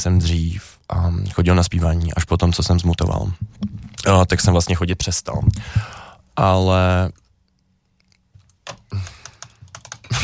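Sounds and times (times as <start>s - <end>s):
speech: 0.0s - 7.2s
computer keyboard clicking: 8.4s - 10.1s.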